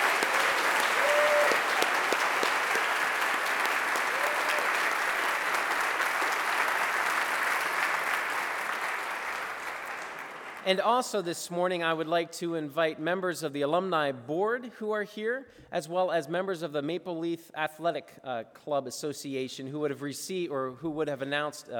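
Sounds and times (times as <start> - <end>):
large audience applause: 0.0 - 10.7
speech: 10.7 - 21.7.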